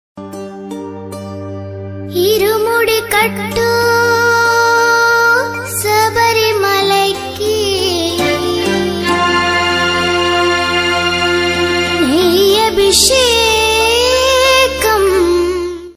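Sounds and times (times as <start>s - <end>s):
devotional song in Telugu: 0.3s - 15.9s.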